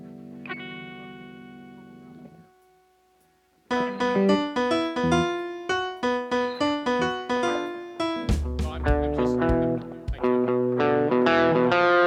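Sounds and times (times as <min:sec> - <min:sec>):
strings: 0:03.7 - 0:11.9.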